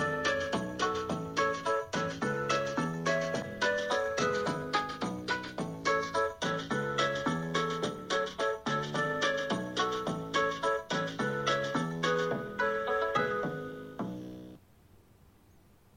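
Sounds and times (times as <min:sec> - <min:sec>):
generic background music: 0:00.0 - 0:14.6.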